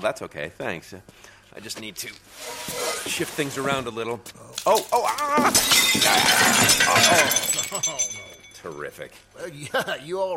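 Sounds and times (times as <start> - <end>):
speech: 0.0 - 10.3
box of ceramic mugs shattering: 4.6 - 8.9.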